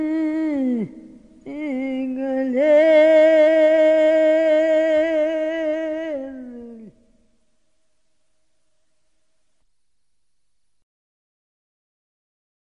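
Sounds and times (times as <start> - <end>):
person singing a personal song: 0.0 - 7.0.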